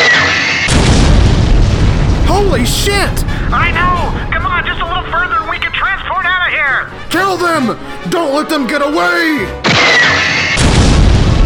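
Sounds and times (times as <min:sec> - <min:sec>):
bazooka fire explosion: 0:00.0 - 0:06.8, 0:09.7 - 0:11.4
speech: 0:02.4 - 0:10.5.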